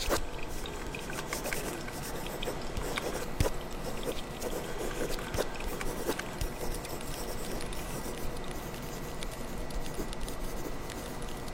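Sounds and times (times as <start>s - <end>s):
handwriting scratching: 0.0s - 11.4s.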